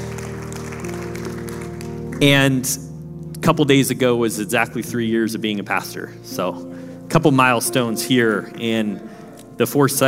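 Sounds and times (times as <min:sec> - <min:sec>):
audience clapping: 0:00.0 - 0:02.4
speech: 0:02.2 - 0:10.0.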